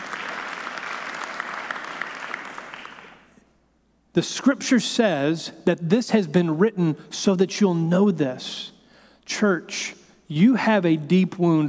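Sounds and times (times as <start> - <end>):
audience clapping: 0.0 - 3.4
speech: 4.2 - 8.7, 9.3 - 11.6.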